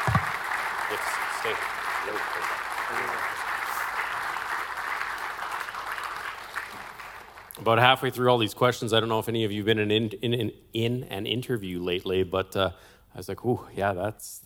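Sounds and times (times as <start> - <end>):
audience applause: 0.0 - 7.5
speech: 0.9 - 3.2, 7.6 - 14.4.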